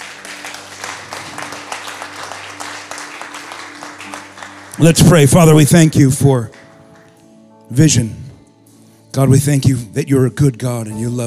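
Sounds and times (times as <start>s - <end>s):
church audience clapping: 0.0s - 7.4s
speech: 4.8s - 6.6s, 7.7s - 8.2s, 9.2s - 11.2s.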